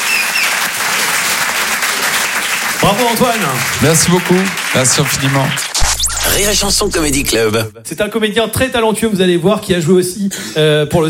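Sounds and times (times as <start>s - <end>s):
audience clapping in a comedy club: 0.0s - 5.8s
speech: 2.8s - 11.0s.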